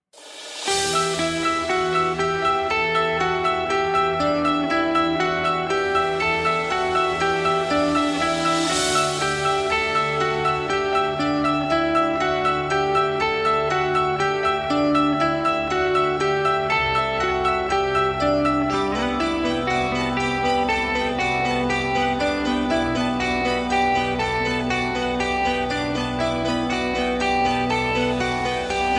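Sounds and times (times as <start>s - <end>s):
metal cover song: 0.6s - 28.9s.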